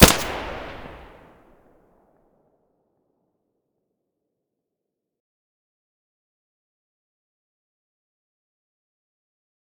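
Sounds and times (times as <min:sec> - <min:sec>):
weapon muzzle blasts: 0:00.0 - 0:01.2.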